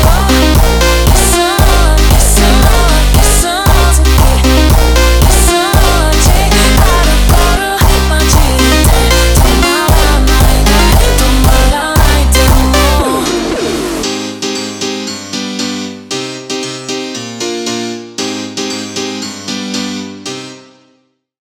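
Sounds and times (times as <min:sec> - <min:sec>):
slowed phonk music: 0:00.0 - 0:15.1.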